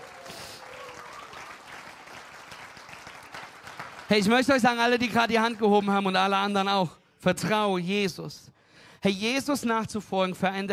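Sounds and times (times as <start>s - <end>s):
audience applause: 0.0s - 5.8s
speech: 4.1s - 10.7s.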